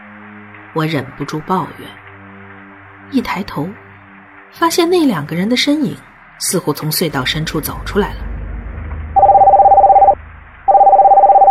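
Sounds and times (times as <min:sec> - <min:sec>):
speech: 0:00.7 - 0:02.0, 0:03.1 - 0:03.8, 0:04.5 - 0:08.2
mobile phone ringing: 0:09.2 - 0:11.5.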